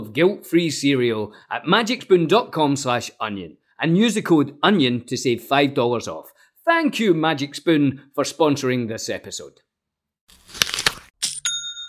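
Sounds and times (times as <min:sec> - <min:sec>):
speech: 0:00.2 - 0:09.7
online store sale notification chime: 0:11.3 - 0:11.8.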